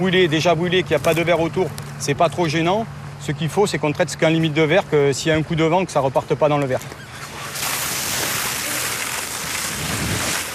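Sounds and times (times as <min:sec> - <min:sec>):
speech: 0:00.0 - 0:07.0
fire hose spraying white foam on tree trunk: 0:07.2 - 0:10.5.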